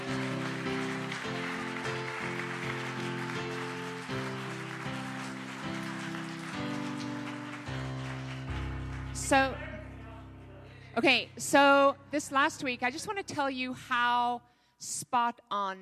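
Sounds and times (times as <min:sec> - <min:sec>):
audience clapping hands: 0:00.0 - 0:09.8
speech: 0:09.2 - 0:09.6, 0:11.0 - 0:15.8.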